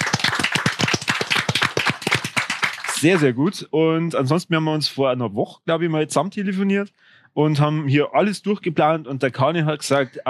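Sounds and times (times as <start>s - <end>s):
applause for the live video editor: 0.0s - 3.3s
speech: 3.0s - 10.2s.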